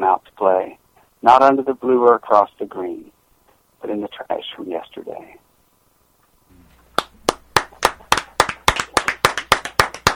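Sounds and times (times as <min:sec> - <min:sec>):
speech: 0:00.1 - 0:03.1, 0:03.8 - 0:05.4
clapping after a song: 0:06.9 - 0:10.1.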